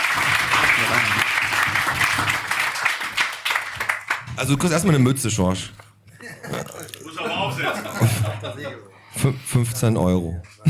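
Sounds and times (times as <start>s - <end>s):
audience applause: 0.0s - 5.0s
laughter: 0.2s - 1.4s, 6.1s - 9.1s
speech: 4.4s - 5.8s, 8.0s - 10.6s.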